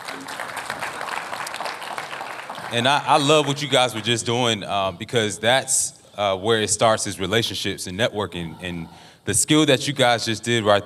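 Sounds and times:
audience round of applause: 0:00.0 - 0:04.1
speech: 0:02.7 - 0:10.8.

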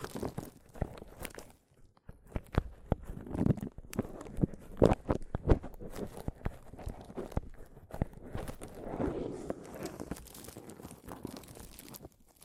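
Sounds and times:
microphone tapping: 0:02.0 - 0:09.6
rough scratching and crinkling rubs on microphone: 0:02.3 - 0:12.4.

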